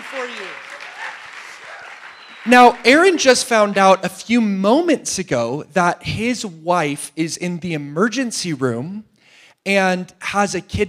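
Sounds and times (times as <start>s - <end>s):
audience applause: 0.0s - 4.2s
speech: 0.1s - 0.7s, 2.4s - 10.8s.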